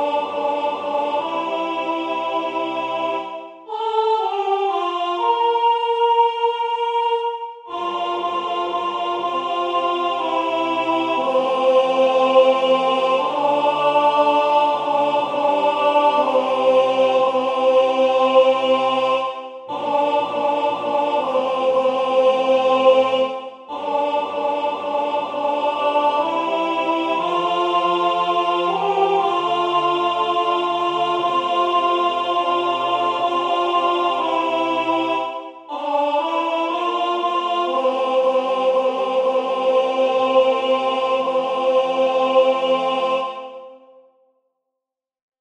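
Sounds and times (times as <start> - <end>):
alto voice singing a prayer: 0.0 - 44.1.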